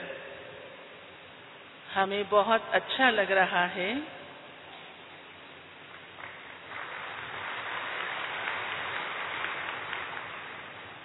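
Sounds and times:
speech: 2.0s - 4.2s
audience clapping: 5.9s - 11.0s.

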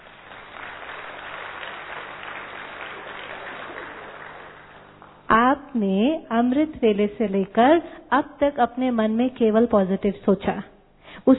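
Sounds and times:
audience clapping for themselves: 0.0s - 5.3s
speech: 5.7s - 11.3s.

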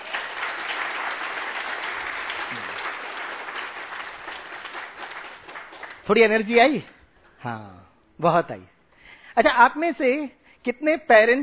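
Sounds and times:
audience clapping loudly: 0.0s - 6.8s
speech: 6.1s - 8.8s, 9.4s - 11.4s.

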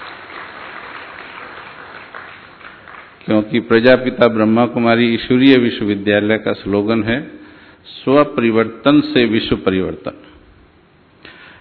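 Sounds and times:
audience applause at a Brahma Kumaris spiritual gathering: 0.0s - 3.3s
speech: 3.3s - 10.3s.

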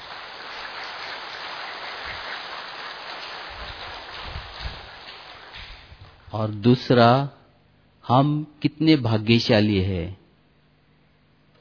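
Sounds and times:
audience clapping: 0.0s - 6.1s
speech: 6.3s - 7.4s, 8.0s - 10.2s.

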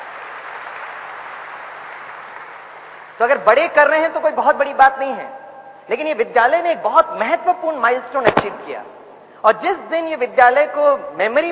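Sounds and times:
audience applause: 0.0s - 3.2s
speech: 3.2s - 11.5s.

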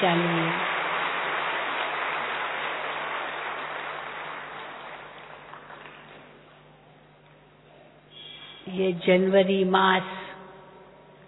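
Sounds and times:
speech: 0.0s - 0.6s, 8.7s - 10.2s
audience clapping: 0.0s - 6.6s.

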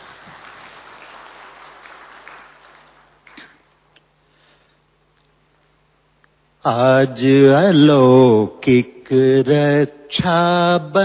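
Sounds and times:
audience clapping in welcome: 0.0s - 3.8s
speech: 6.6s - 11.0s.

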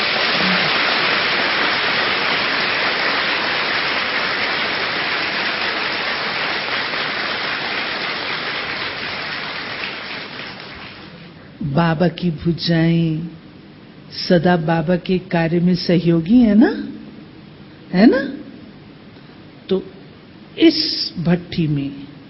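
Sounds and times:
audience clapping loudly: 0.0s - 11.3s
speech: 11.8s - 13.4s, 14.1s - 16.9s, 17.9s - 18.4s, 19.7s - 19.9s, 20.6s - 22.0s.

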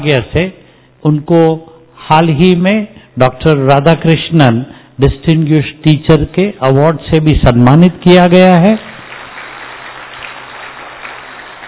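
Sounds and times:
speech: 0.0s - 8.9s
audience applause: 8.9s - 11.6s.

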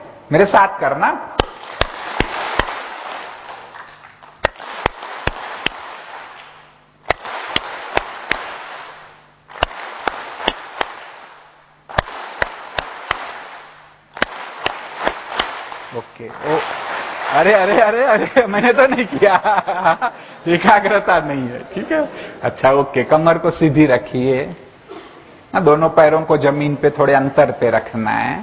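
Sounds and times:
broad noise: 0.0s - 28.4s
speech: 0.3s - 1.3s, 17.4s - 24.6s, 25.5s - 28.4s
sharp hand claps in sets: 1.4s - 11.3s, 11.9s - 17.8s
laughter: 17.6s - 22.4s.

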